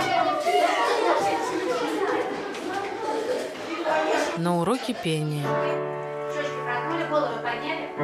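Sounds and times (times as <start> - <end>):
students walking in a school corridor: 0.0 - 5.5
students chattering in a school corridor: 0.0 - 7.9
speech: 4.4 - 6.5.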